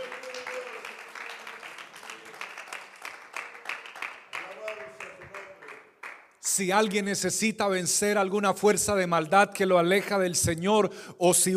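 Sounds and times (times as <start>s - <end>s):
crowd applauding: 0.0s - 7.0s
speech: 6.6s - 11.5s.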